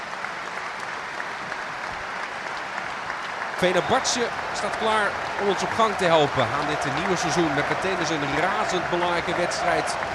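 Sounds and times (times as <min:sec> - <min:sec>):
stadium crowd applause in de Kuip: 0:00.0 - 0:10.1
speech: 0:03.6 - 0:10.1.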